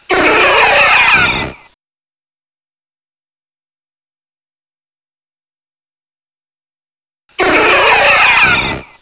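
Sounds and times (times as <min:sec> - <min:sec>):
Mewtwo cry: 0:00.0 - 0:01.7, 0:07.4 - 0:09.0.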